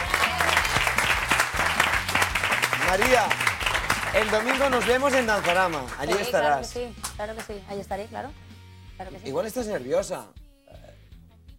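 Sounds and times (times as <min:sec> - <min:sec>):
audience applause on a Spanish television show: 0:00.0 - 0:06.5
speech: 0:02.9 - 0:03.5, 0:04.1 - 0:08.4, 0:09.0 - 0:10.4.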